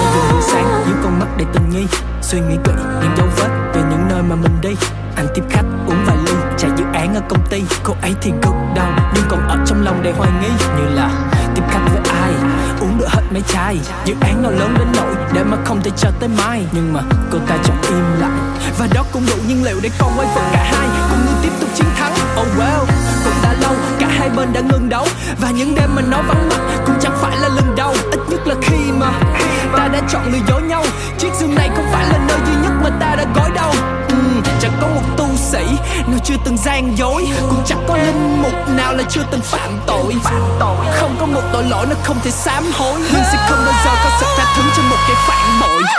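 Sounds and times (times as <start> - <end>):
rap ringtone: 0.0 - 45.9.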